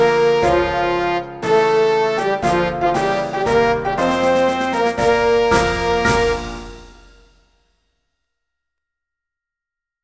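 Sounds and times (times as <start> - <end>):
trombone: 0.0 - 7.3.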